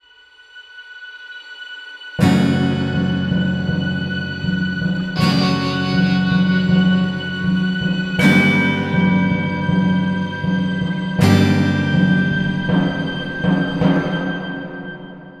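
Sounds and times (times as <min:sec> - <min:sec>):
city enter music stinger: 0:02.2 - 0:15.2.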